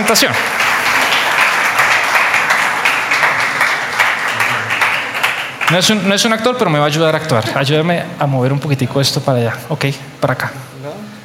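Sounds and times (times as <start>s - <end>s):
speech: 0.0s - 0.7s, 5.7s - 11.1s
audience applauding a guest: 0.0s - 6.2s.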